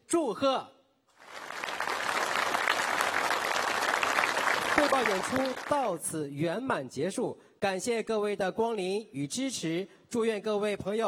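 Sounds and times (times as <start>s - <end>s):
speech: 0.1s - 0.8s, 4.9s - 11.0s
audience applause: 1.2s - 6.0s.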